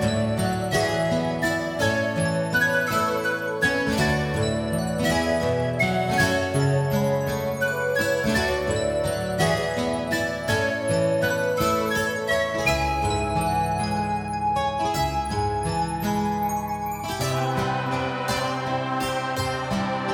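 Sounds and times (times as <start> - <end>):
XV-XR acoustic instrument: 0.0 - 20.1.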